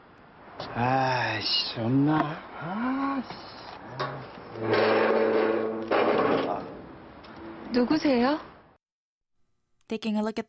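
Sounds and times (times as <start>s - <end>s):
speech: 0.7s - 5.6s, 7.7s - 8.5s, 9.9s - 10.4s
banging on a metal gate: 4.0s - 7.6s.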